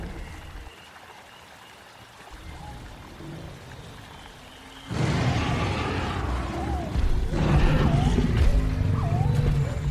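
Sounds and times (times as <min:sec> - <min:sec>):
dinosaur growling rumbles in a prehistoric forest: 0:04.9 - 0:09.8.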